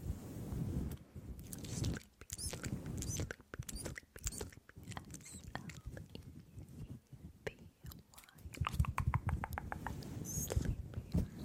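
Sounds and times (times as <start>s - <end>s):
long nails scratching a fluffy microphone cover: 0.0s - 6.0s, 8.3s - 11.4s.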